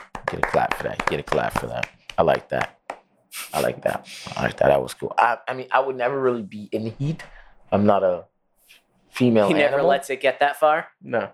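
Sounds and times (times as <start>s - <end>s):
hand clapping: 0.0s - 4.5s
speech: 0.3s - 11.3s.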